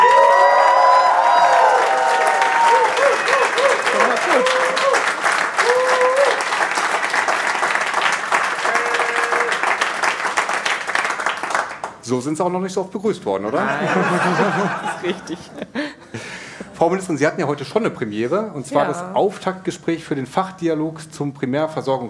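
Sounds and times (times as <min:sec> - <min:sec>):
whoops and cheering: 0:00.0 - 0:06.5, 0:08.6 - 0:09.7
live crowd applauding: 0:00.0 - 0:12.0
laughter: 0:03.0 - 0:04.8, 0:13.5 - 0:16.8
speech: 0:12.1 - 0:15.9, 0:16.8 - 0:22.0.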